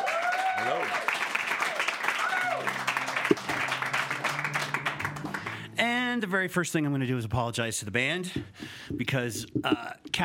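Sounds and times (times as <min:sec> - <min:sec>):
small studio crowd clapping in welcome: 0:00.0 - 0:05.7
speech: 0:00.6 - 0:01.1, 0:06.2 - 0:10.2.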